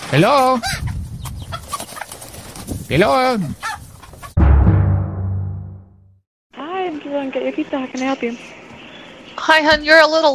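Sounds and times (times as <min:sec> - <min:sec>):
speech: 0:00.1 - 0:00.8, 0:02.9 - 0:03.7, 0:07.3 - 0:08.5, 0:09.4 - 0:10.3
chicken squawking and clucking: 0:00.4 - 0:02.6, 0:03.3 - 0:04.4.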